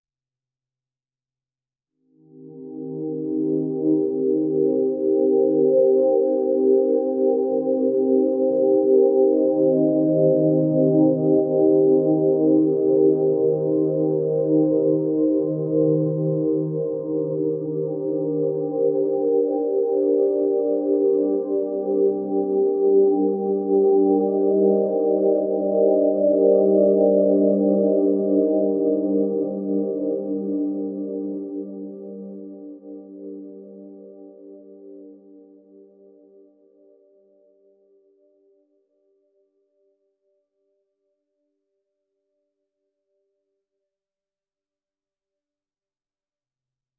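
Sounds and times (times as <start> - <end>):
extremely relaxing keyboard music: 2.2 - 37.6.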